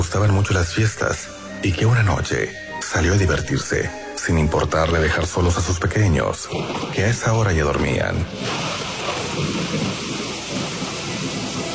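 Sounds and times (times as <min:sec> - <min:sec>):
speech: 0:00.0 - 0:08.8
heavy rain: 0:06.5 - 0:11.7
thunder: 0:06.5 - 0:11.7.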